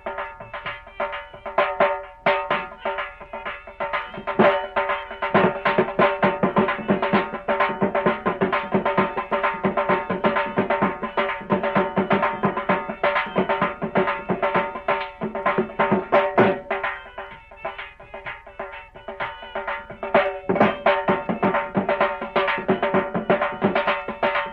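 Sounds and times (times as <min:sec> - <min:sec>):
Punjabi dhol instrumental: 0:00.0 - 0:24.5.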